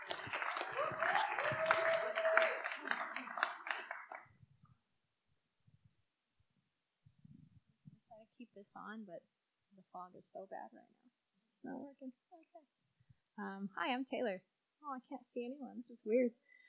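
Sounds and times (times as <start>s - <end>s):
audience applause: 0.0s - 4.3s
speech: 8.6s - 11.0s, 11.6s - 12.8s, 13.4s - 16.5s.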